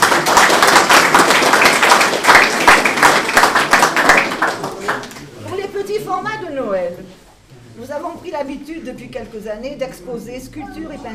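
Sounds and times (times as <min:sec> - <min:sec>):
audience applause: 0:00.0 - 0:05.3
speech: 0:08.3 - 0:11.1.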